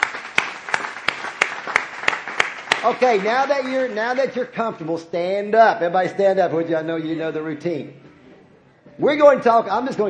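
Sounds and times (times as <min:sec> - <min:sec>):
church congregation clapping in unison: 0:00.0 - 0:04.6
softer scattered applause: 0:00.0 - 0:04.6
speech: 0:02.8 - 0:08.0, 0:09.0 - 0:10.0.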